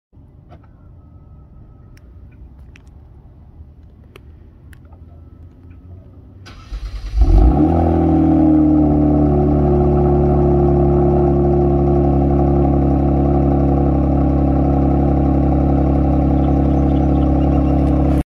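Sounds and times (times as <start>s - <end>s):
Kia car exhaust: 6.5s - 18.2s.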